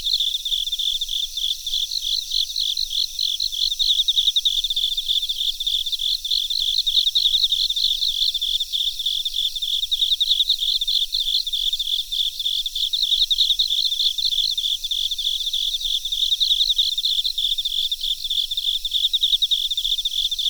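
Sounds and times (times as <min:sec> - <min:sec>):
cricket chirping: 0:00.0 - 0:20.4.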